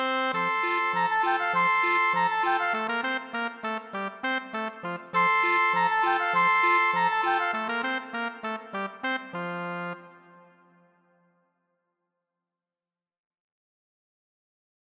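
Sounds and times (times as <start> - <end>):
musette WW trio playing: 0.0 - 10.0.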